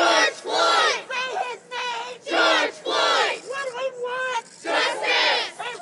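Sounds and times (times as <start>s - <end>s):
protest crowd chanting outside a court trial in Minneapolis: 0.0s - 3.4s, 4.6s - 5.7s.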